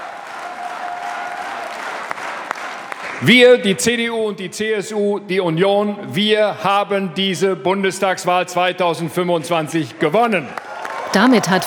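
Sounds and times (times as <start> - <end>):
applause at party headquarters: 0.0 - 3.3, 10.5 - 11.6
speech: 3.2 - 11.6.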